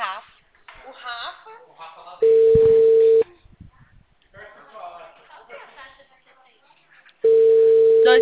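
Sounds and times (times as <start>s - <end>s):
telephone ringback tone on an outgoing call: 2.2s - 3.2s, 7.2s - 8.2s.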